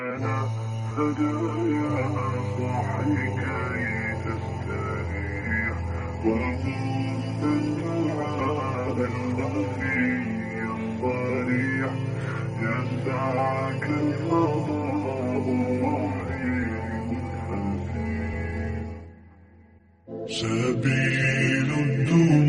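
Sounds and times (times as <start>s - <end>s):
background music theme: 0.1s - 22.4s.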